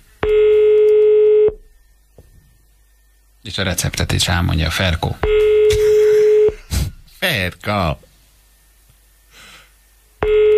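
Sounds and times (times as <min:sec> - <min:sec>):
telephone line tone while calling a radio listener: 0:00.2 - 0:01.6, 0:05.3 - 0:06.6, 0:10.2 - 0:10.5
speech: 0:03.5 - 0:05.4, 0:07.3 - 0:08.1.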